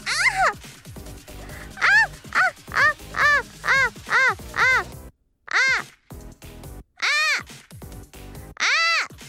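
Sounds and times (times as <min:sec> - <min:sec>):
hopeful noises: 0:00.0 - 0:04.9, 0:05.5 - 0:05.9.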